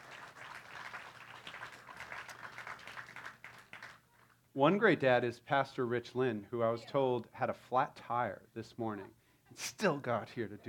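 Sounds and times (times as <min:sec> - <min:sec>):
audience round of applause: 0:00.0 - 0:04.0
speech: 0:04.6 - 0:10.6.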